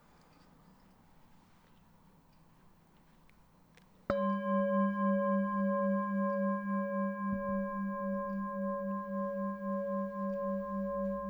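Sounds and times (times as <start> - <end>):
meditation bell ringing: 4.1 - 11.2.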